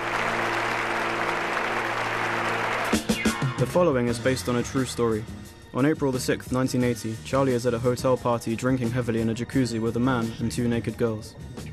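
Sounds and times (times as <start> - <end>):
large crowd applause: 0.0 - 3.4
speech: 2.9 - 11.7.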